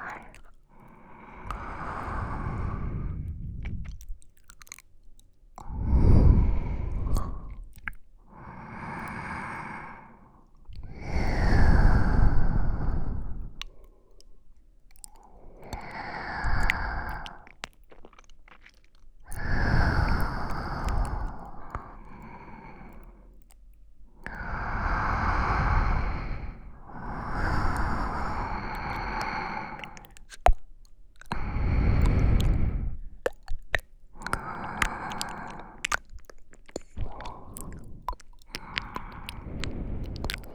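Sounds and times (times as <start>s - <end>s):
sleeping breath in both ears: 0.0s - 4.0s, 5.6s - 7.7s, 8.3s - 14.1s, 15.2s - 17.4s, 19.3s - 23.4s, 24.2s - 30.2s, 31.3s - 33.2s, 34.2s - 36.0s, 36.7s - 40.5s
wet squishing sounds: 0.0s - 40.5s.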